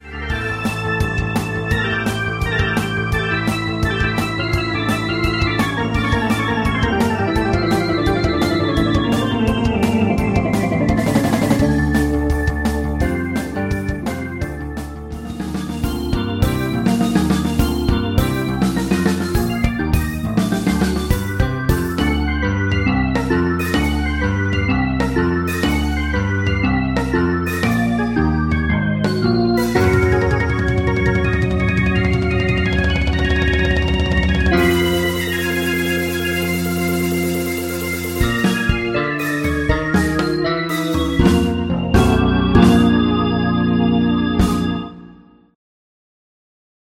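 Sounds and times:
tonewheel organ fusion music: 0:00.0 - 0:45.6.

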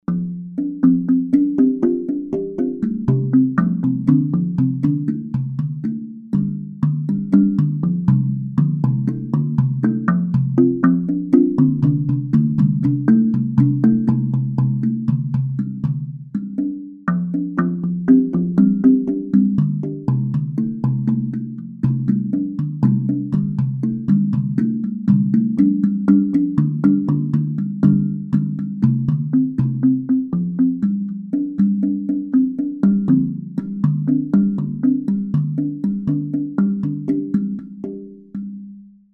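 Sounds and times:
african groove music: 0:00.0 - 0:38.6.

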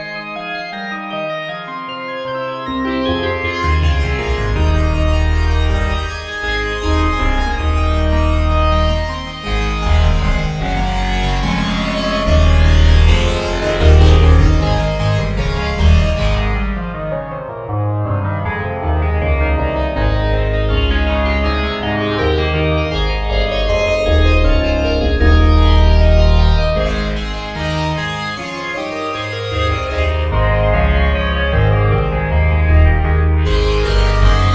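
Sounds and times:
church organ: 0:00.0 - 0:34.5.

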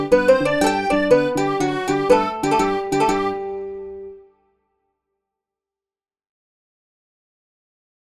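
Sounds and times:
ukulele: 0:00.0 - 0:04.2.

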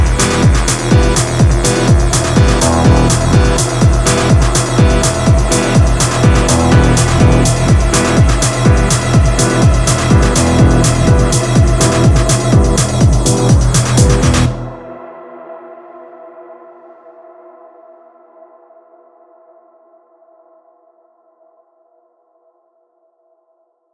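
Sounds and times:
techno music: 0:00.0 - 0:14.9.

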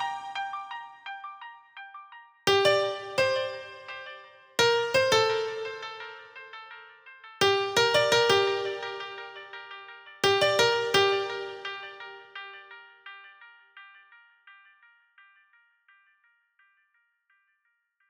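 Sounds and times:
piano: 0:00.0 - 0:13.7.

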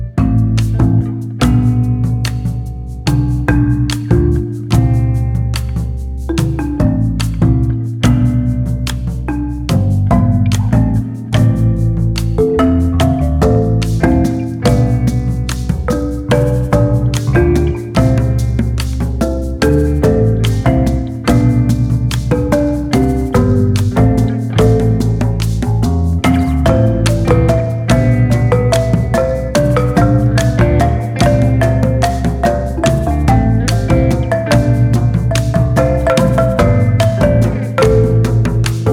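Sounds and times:
marimba: 0:00.2 - 0:38.9.

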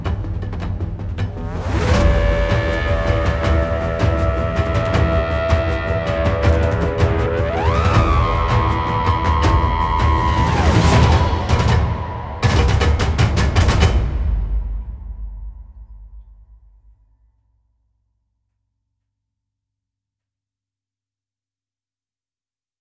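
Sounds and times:
engine percussion: 0:00.0 - 0:17.0
low drums: 0:00.0 - 0:17.1.

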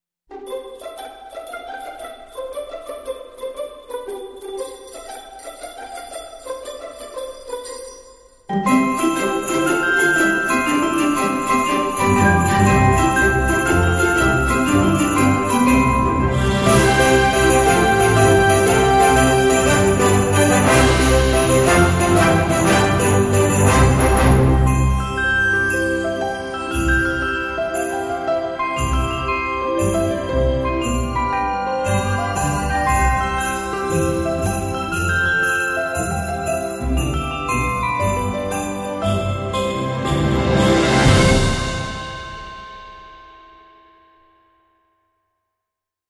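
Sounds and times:
sleigh bells on a toboggan ride: 0:00.3 - 0:44.6.

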